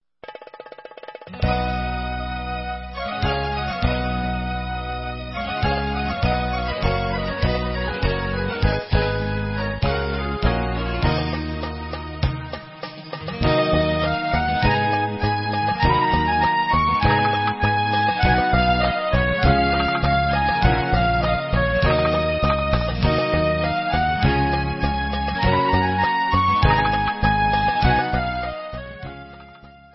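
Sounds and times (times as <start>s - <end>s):
instrumental music: 0.2s - 29.9s.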